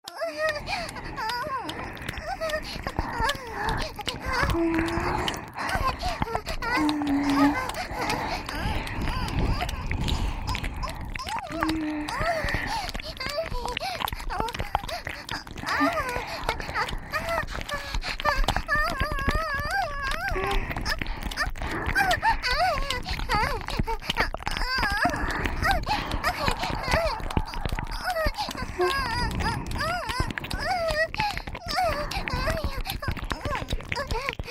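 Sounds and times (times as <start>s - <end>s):
cute moaning: 0.0s - 34.4s
tongue-tip licking of both ears: 0.0s - 34.4s.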